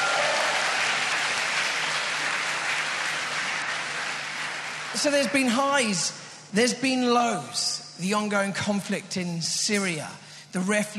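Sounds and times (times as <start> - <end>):
audience applause: 0.0 - 5.6
speech: 4.9 - 10.9.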